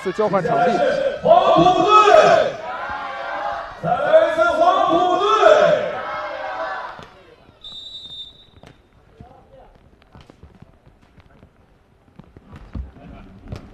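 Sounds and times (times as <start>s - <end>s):
speech: 0.0s - 2.6s
crowd at a volleyball match chanting and cheering for the Yangjin team: 0.0s - 7.4s.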